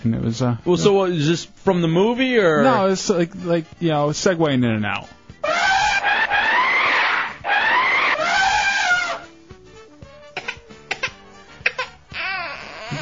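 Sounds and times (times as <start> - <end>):
speech: 0.0 - 5.2
baby crying: 5.4 - 9.3, 10.4 - 13.0.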